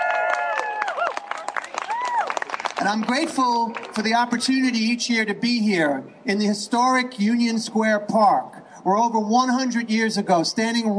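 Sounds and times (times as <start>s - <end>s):
crowd whooping and cheering at an outdoor gathering in Union Square Park: 0.0s - 2.6s
crowd applauding at an outdoor gathering in Union Square Park: 0.0s - 4.2s
speech: 2.8s - 10.9s.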